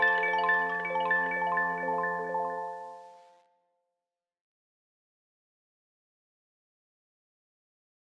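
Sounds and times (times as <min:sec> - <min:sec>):
kalimba: 0:00.0 - 0:03.2.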